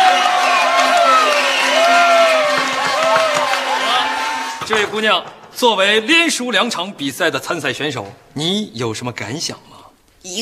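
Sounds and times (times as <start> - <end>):
audience applause: 0.0 - 4.8
speech: 4.7 - 10.3.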